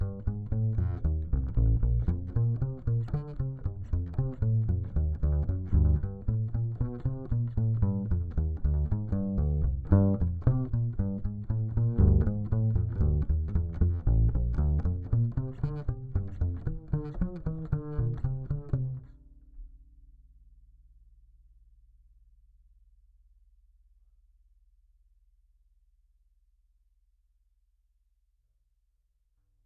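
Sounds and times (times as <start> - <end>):
bass guitar recorded by direct input: 0.0 - 19.9.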